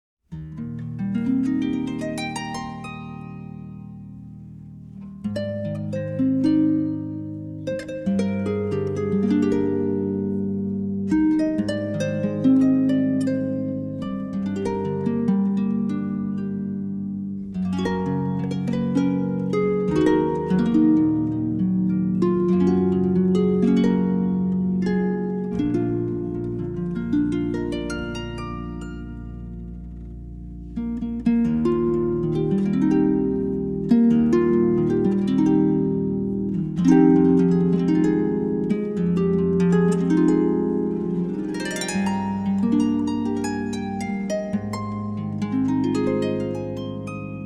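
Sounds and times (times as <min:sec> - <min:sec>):
harp: 0:00.3 - 0:47.4.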